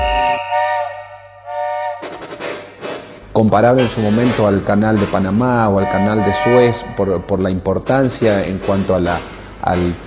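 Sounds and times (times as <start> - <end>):
steam train whistle: 0.0 - 3.0, 5.0 - 7.2
speech: 3.4 - 10.0.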